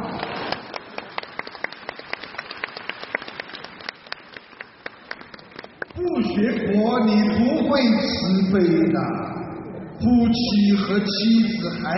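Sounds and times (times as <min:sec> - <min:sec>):
audience applauding: 0:00.0 - 0:06.0
speech: 0:06.4 - 0:09.2, 0:10.0 - 0:11.9.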